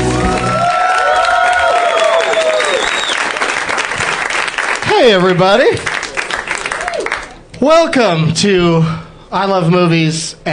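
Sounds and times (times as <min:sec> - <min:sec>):
audience clapping at a UCB Theater show: 0:00.0 - 0:07.5
audience whooping at a UCB Theater show: 0:00.1 - 0:03.3, 0:06.7 - 0:07.3
speech: 0:05.1 - 0:05.9, 0:07.6 - 0:10.5.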